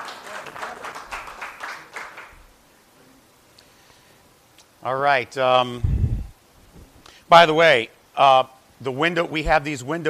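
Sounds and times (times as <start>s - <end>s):
audience clapping: 0.0s - 2.5s
speech: 4.8s - 6.0s, 7.3s - 10.0s.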